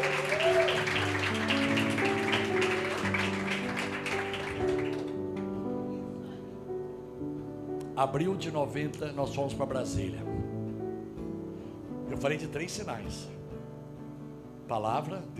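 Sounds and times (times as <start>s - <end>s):
crowd applause: 0.0s - 5.6s
sustained keyboard chords: 0.0s - 15.3s
speech: 8.0s - 10.6s, 12.2s - 13.4s, 14.7s - 15.3s.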